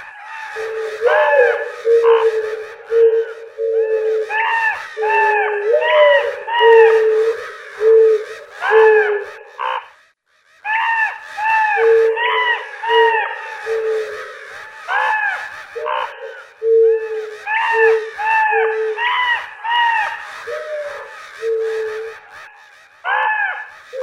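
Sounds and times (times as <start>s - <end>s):
crow cawing in a fight with an owl: 0.0s - 24.0s.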